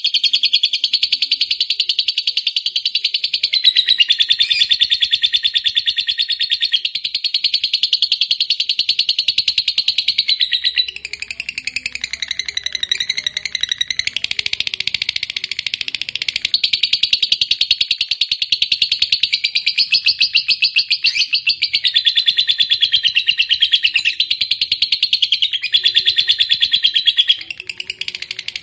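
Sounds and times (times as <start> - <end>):
lovebird chirping: 0.0 - 28.6.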